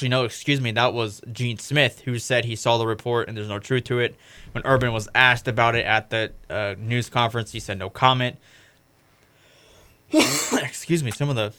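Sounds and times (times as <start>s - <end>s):
speech: 0.0s - 8.6s, 10.1s - 11.5s
person coughing and clearing throat after inhaling microphone foam: 10.1s - 10.8s.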